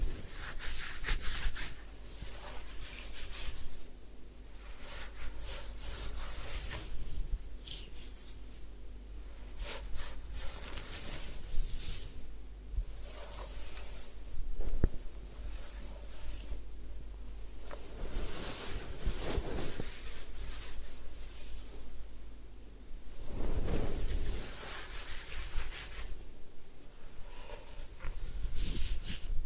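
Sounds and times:
rubbing and scratching of hair washing and ear cleaning: 0:00.0 - 0:03.9, 0:04.6 - 0:08.5, 0:12.9 - 0:16.7, 0:17.7 - 0:22.0, 0:23.2 - 0:26.3, 0:27.5 - 0:29.4
soft brushing: 0:00.0 - 0:03.9, 0:04.5 - 0:22.1, 0:23.0 - 0:26.4.

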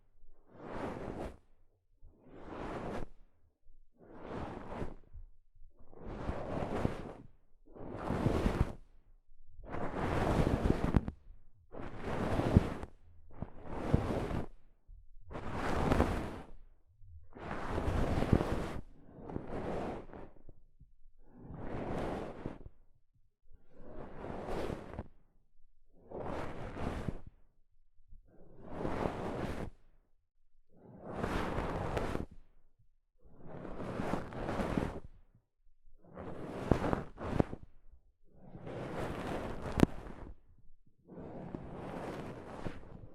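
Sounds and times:
soft fabric brushing across a microphone: 0:00.5 - 0:01.5, 0:02.2 - 0:03.3, 0:03.9 - 0:09.0, 0:09.6 - 0:14.7, 0:15.3 - 0:20.5, 0:21.3 - 0:22.7, 0:23.8 - 0:25.1, 0:26.2 - 0:27.3, 0:28.6 - 0:29.8, 0:31.0 - 0:32.4, 0:33.4 - 0:35.1, 0:36.2 - 0:37.7, 0:38.7 - 0:40.3, 0:41.1 - 0:43.1.

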